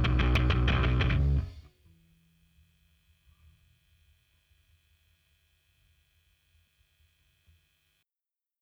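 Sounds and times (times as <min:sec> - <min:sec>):
bass: 0:00.0 - 0:01.7.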